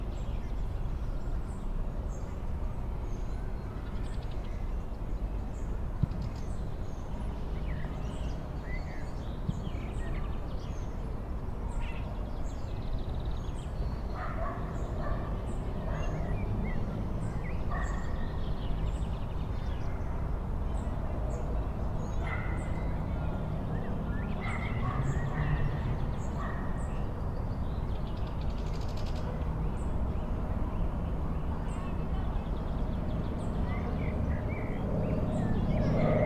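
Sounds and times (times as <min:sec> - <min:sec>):
city park ambience in Košice: 0:00.0 - 0:36.2.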